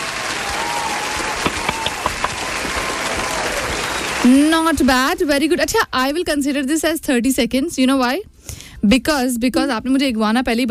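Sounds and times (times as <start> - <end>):
applause: 0.0 - 5.1
speech: 4.2 - 10.6.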